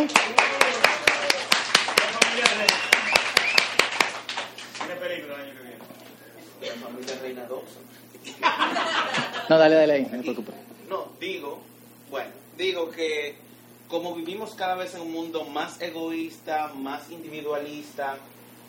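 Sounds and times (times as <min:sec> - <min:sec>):
audience clapping: 0:00.0 - 0:05.2
people talking and chuckling: 0:08.0 - 0:09.6
speech: 0:09.5 - 0:10.6, 0:11.2 - 0:18.4.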